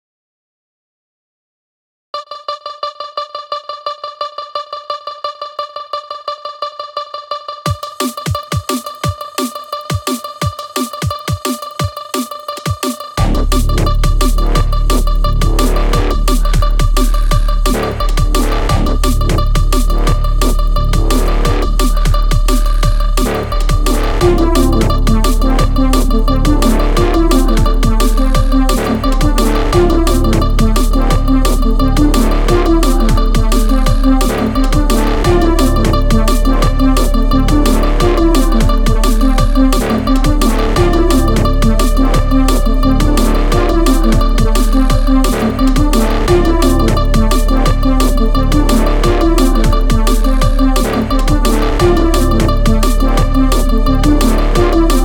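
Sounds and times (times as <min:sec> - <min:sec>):
EDM pop music: 0:02.3 - 0:55.0.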